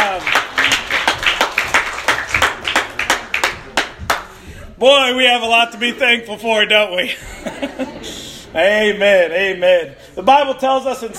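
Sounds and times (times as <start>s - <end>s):
audience applause for volunteers: 0.0s - 4.4s
speech: 4.8s - 11.1s
laughter: 6.9s - 8.9s, 10.9s - 11.1s.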